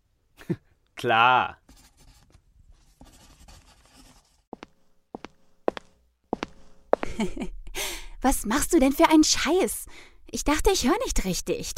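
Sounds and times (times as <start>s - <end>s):
speech: 0.5s - 1.6s, 7.2s - 7.6s, 8.2s - 11.7s
pen scratching out an autograph: 1.7s - 4.4s.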